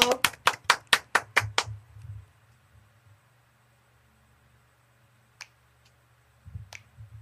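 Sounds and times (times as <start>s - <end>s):
hand claps: 0.0s - 1.8s.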